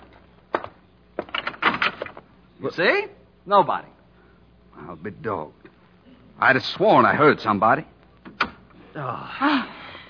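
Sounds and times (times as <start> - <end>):
door rattling and scraping as it swings: 1.2 - 2.2
speech: 2.6 - 4.0, 4.9 - 5.6, 6.4 - 7.9, 9.0 - 9.8.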